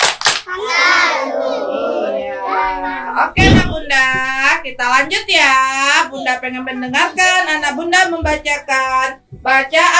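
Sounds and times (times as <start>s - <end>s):
children's hand claps in a tepuk salut chant: 0.0s - 0.5s
young voices chanting a clapping chant in unison: 0.5s - 3.0s
speech: 3.2s - 9.9s.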